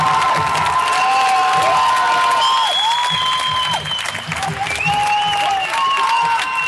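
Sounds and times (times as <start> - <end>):
stadium crowd cheering: 0.0 - 6.6.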